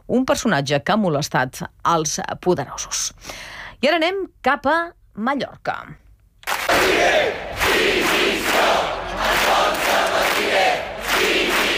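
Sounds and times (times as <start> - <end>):
speech: 0.1 - 6.0
protesters chanting against police charges: 6.7 - 11.7.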